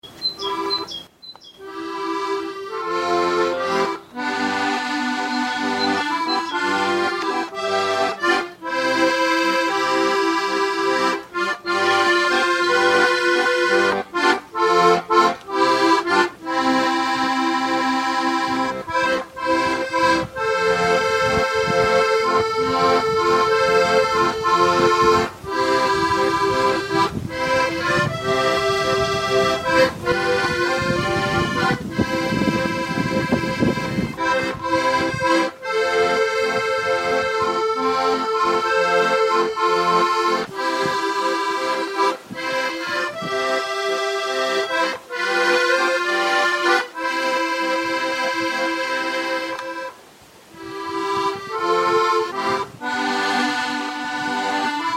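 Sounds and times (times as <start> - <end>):
canon tune: 0.0 - 50.0, 50.6 - 54.9.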